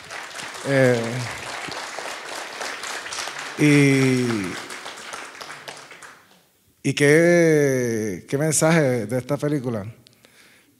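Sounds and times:
crowd applause: 0.0 - 6.4
speech: 0.6 - 1.4, 3.6 - 4.6, 6.8 - 10.0.

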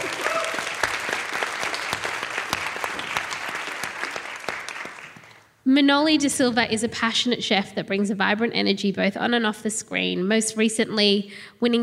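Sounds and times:
audience applause: 0.0 - 5.4
speech: 5.8 - 11.8.

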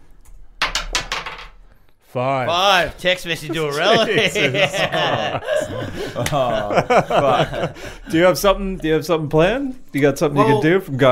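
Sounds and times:
dice being rolled: 0.6 - 1.6
speech: 2.1 - 11.1
laughter: 3.2 - 8.4, 10.4 - 10.8.

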